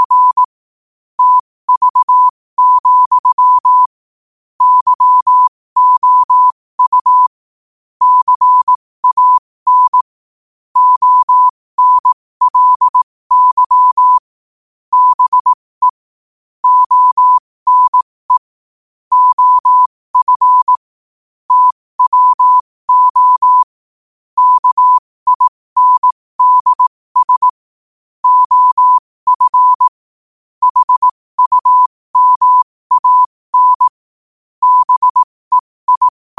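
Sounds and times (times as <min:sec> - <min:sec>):
morse code at 5 wpm: 0:00.0 - 0:00.5, 0:01.2 - 0:03.9, 0:04.6 - 0:07.3, 0:08.0 - 0:10.2, 0:10.8 - 0:14.3, 0:14.9 - 0:16.0, 0:16.6 - 0:18.5, 0:19.1 - 0:20.9, 0:21.5 - 0:23.8, 0:24.4 - 0:27.6, 0:28.2 - 0:30.0, 0:30.6 - 0:34.0, 0:34.6 - 0:36.3.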